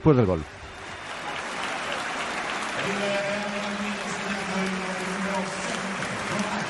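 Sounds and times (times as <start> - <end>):
Juventus stadium crowd ovation after a goal: 0.0 - 6.6.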